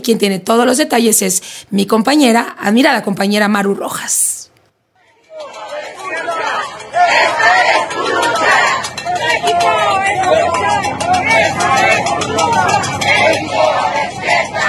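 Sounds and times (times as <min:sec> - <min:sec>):
speech: 0:00.0 - 0:04.3
protesters shouting: 0:05.0 - 0:14.6.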